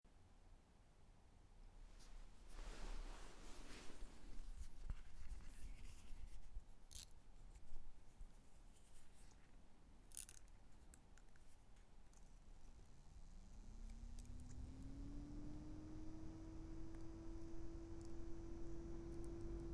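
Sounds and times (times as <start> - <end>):
fan noise: 1.7 - 6.4, 12.1 - 19.7.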